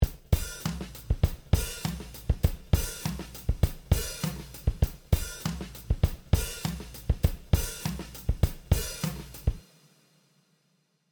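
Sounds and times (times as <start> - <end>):
drum: 0.0 - 9.7.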